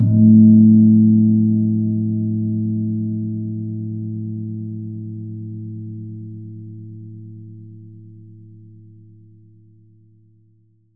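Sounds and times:
gong: 0:00.0 - 0:07.3.

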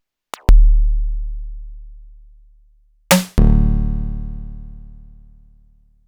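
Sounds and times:
sliced samples from Noise Engineering Basimilus Iteritas synthesizer: 0:00.5 - 0:02.4, 0:03.1 - 0:05.1.

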